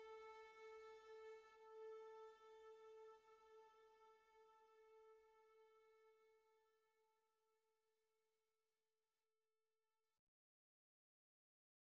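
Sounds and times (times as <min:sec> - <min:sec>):
harmonic string instruments mix: 0:00.0 - 0:06.8.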